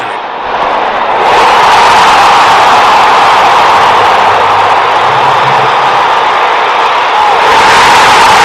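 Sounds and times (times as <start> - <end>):
huge baseball stadium crowd cheering: 0.0 - 8.4.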